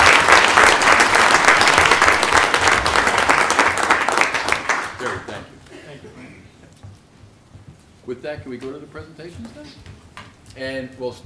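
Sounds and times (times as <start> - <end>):
audience round of applause: 0.0 - 5.6
speech: 8.2 - 11.2.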